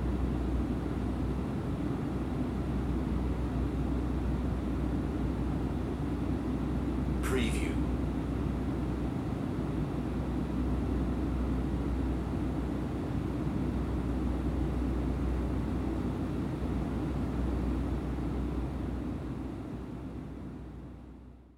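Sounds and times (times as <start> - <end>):
jet aircraft cabin interior noise: 0.0 - 21.2.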